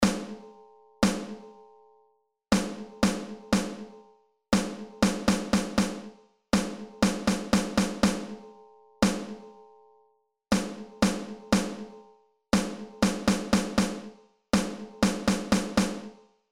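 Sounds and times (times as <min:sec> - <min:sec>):
snare drum rhythms: 0:00.0 - 0:00.4, 0:01.0 - 0:01.4, 0:02.5 - 0:04.0, 0:04.6 - 0:08.4, 0:09.0 - 0:09.4, 0:10.5 - 0:11.9, 0:12.6 - 0:16.2.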